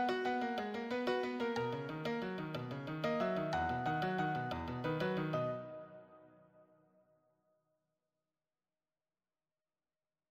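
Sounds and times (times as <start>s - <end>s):
solo piano: 0.0s - 6.5s.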